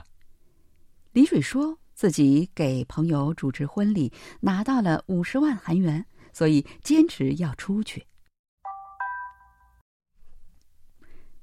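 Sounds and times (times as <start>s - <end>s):
speech: 1.2s - 8.1s
text message notification chime: 8.6s - 9.8s.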